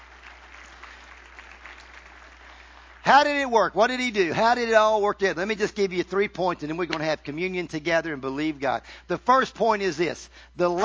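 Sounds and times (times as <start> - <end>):
audience applause: 0.0 - 3.1
speech: 3.1 - 10.8.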